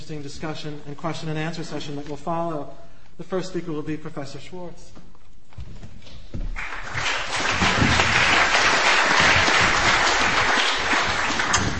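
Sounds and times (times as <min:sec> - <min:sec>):
speech: 0:00.1 - 0:05.8
audience applause: 0:06.6 - 0:11.7.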